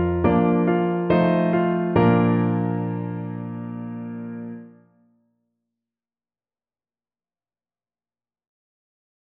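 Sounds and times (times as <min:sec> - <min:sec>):
slow waltz music: 0:00.0 - 0:04.7.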